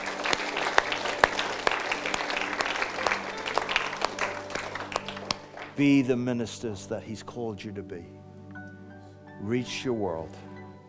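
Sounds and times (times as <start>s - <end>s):
people clapping: 0.0s - 6.0s
speech: 5.8s - 8.2s, 9.4s - 10.5s.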